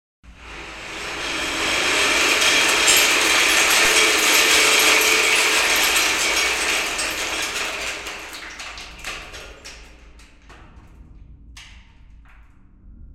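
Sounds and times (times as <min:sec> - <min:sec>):
rainstick: 0:00.4 - 0:09.9.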